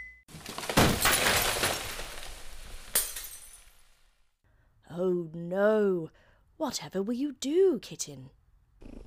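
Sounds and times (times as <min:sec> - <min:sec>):
glass Christmas ornament knocked off and shattering: 0:00.5 - 0:04.1
speech: 0:05.1 - 0:08.4.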